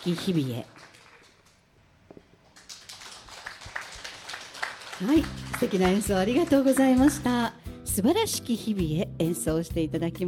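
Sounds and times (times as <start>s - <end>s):
speech: 0.0s - 0.9s, 5.0s - 10.2s
audience clapping: 0.0s - 1.7s, 2.4s - 7.4s.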